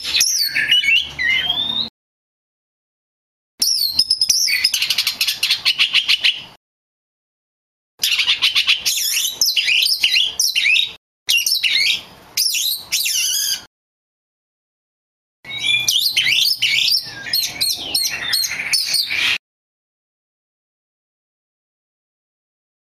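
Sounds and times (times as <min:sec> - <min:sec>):
magpie robin bird singing: 0:00.0 - 0:01.9, 0:03.6 - 0:06.6, 0:08.0 - 0:13.7, 0:15.5 - 0:19.4.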